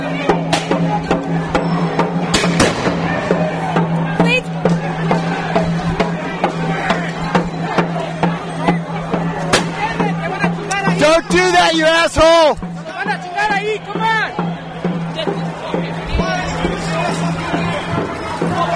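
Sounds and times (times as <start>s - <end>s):
restless crowd noise: 0.0s - 18.7s
voices shouting: 0.0s - 18.7s
rubber bullets fired at a crowd: 2.3s - 3.5s.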